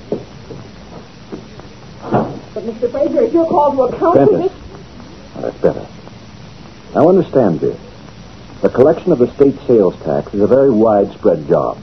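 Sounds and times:
low steady hiss: 0:00.0 - 0:11.8
door shutting with a muffled thud: 0:02.0 - 0:02.5
speech: 0:02.6 - 0:04.6, 0:05.4 - 0:06.0, 0:07.0 - 0:07.9, 0:08.6 - 0:11.8.

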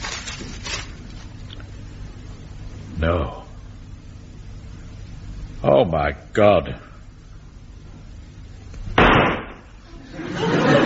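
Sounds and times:
speech: 0:03.0 - 0:03.4, 0:05.6 - 0:06.9
gunshot in a dramatized scene: 0:09.0 - 0:09.7
laughter: 0:09.8 - 0:10.8.

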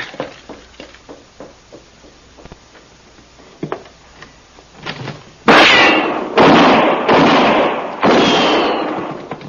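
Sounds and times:
gunfire in a shootout: 0:05.5 - 0:09.2.

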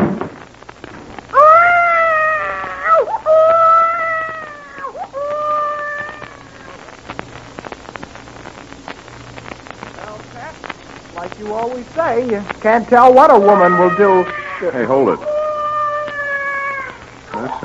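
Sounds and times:
baby crying: 0:01.4 - 0:06.8, 0:13.3 - 0:17.6
speech: 0:12.0 - 0:15.3.

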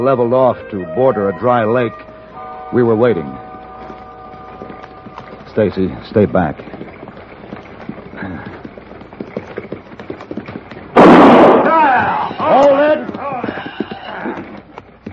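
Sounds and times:
speech: 0:00.0 - 0:02.1, 0:02.7 - 0:03.5, 0:05.6 - 0:06.9
harmonic wavering cries: 0:00.0 - 0:05.5, 0:11.7 - 0:14.7
gunshot fired into the air as a warning on a trail beside a dry lake: 0:11.0 - 0:12.3.

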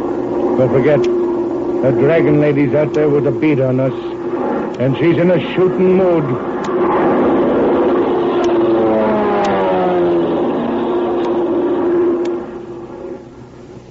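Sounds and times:
airplane engine droning overhead: 0:00.0 - 0:13.8
speech: 0:00.6 - 0:01.2, 0:01.8 - 0:07.1.

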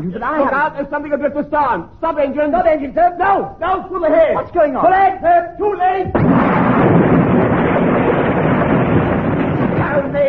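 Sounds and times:
speech: 0:00.0 - 0:07.1, 0:10.0 - 0:10.2
boat crashing and smashing to pieces: 0:06.2 - 0:10.2.

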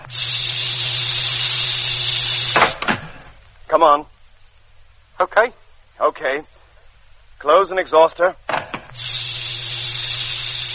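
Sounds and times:
airlock opening with a hiss of escaping air: 0:00.0 - 0:03.4, 0:09.0 - 0:10.7
sharp mechanical clunks: 0:02.5 - 0:03.4, 0:08.5 - 0:09.0
speech: 0:03.7 - 0:04.2, 0:05.2 - 0:06.5, 0:07.4 - 0:08.4.

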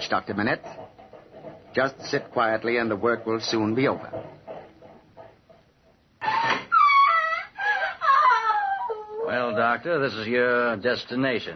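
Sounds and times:
speech: 0:00.1 - 0:00.9, 0:01.8 - 0:04.4, 0:09.3 - 0:11.5
woman screaming: 0:06.3 - 0:09.6.

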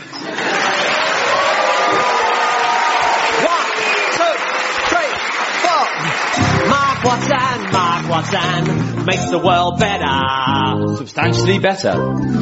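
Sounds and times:
audience clapping: 0:00.0 - 0:09.2
speech: 0:07.1 - 0:12.4.

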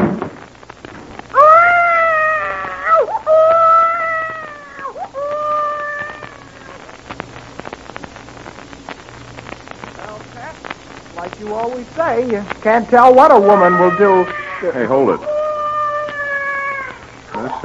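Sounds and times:
low steady hum: 0:00.0 - 0:17.6
baby crying: 0:01.4 - 0:06.8, 0:13.3 - 0:17.0
speech: 0:12.0 - 0:15.3.

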